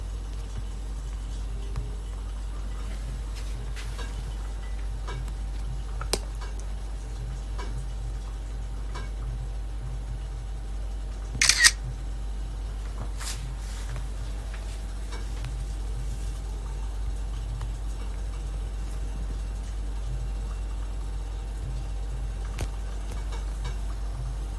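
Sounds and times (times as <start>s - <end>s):
coffee roaster rumble roasting Mocha blend: 0.0s - 24.5s.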